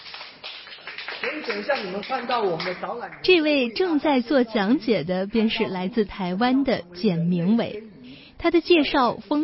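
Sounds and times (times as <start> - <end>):
audience applause: 0.0 - 3.2
speech: 1.3 - 9.4.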